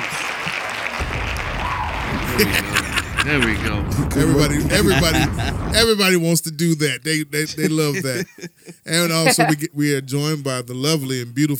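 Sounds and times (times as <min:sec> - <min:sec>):
hand clapping: 0:00.0 - 0:01.5
laughter: 0:02.2 - 0:06.0, 0:07.3 - 0:09.7
speech: 0:02.4 - 0:11.5.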